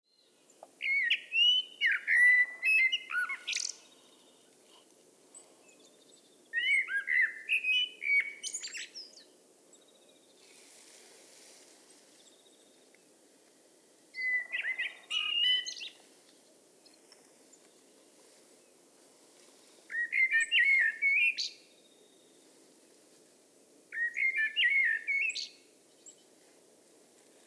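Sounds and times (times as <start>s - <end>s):
Eurasian blackbird singing: 0.6s - 4.6s, 5.7s - 9.3s, 14.2s - 16.0s, 19.9s - 21.6s, 23.9s - 26.2s.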